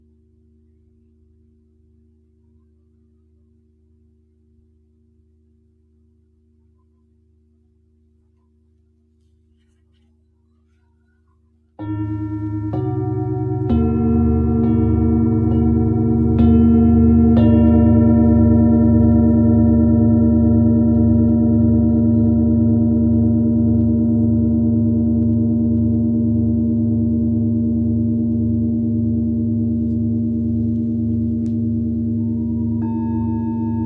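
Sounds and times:
faint low hum: 0:00.0 - 0:33.8
singing bowls struck for sound healing: 0:11.8 - 0:33.8.

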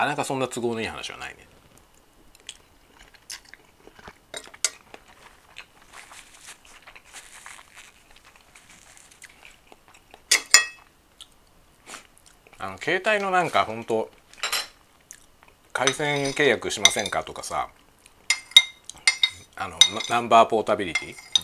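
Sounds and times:
speech: 0:00.0 - 0:01.6, 0:12.7 - 0:14.2, 0:15.8 - 0:17.8, 0:19.6 - 0:21.4
chewing and crunching while eating dinner: 0:01.6 - 0:12.6, 0:14.1 - 0:16.4.

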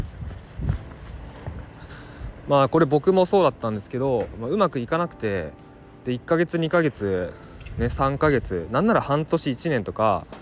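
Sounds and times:
hurried footsteps running across a pedestrian crossing: 0:00.0 - 0:02.5
speech: 0:02.5 - 0:10.4.

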